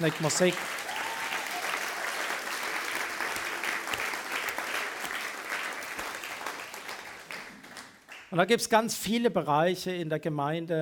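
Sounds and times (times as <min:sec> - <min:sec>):
speech: 0:00.0 - 0:00.9, 0:08.3 - 0:10.8
audience applause: 0:00.0 - 0:08.3.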